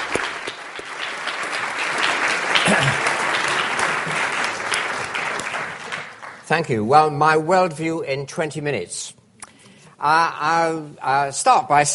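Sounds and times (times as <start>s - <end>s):
audience applause: 0.0s - 6.5s
speech: 2.7s - 3.1s, 6.5s - 9.2s, 10.0s - 11.9s.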